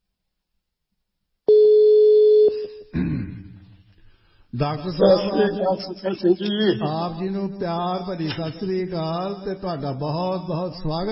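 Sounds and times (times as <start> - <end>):
telephone tone while calling a doctor: 1.5 - 2.6
speech: 4.6 - 11.1.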